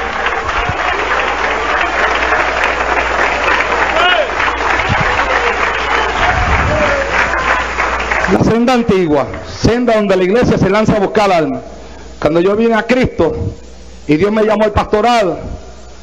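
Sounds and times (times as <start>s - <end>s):
audience applause: 0.0s - 9.4s
speech: 8.5s - 15.5s.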